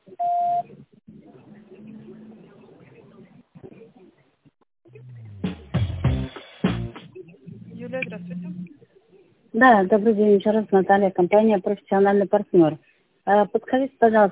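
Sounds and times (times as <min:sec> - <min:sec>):
phone system beep tone: 0:00.2 - 0:00.6
speech: 0:09.6 - 0:14.2.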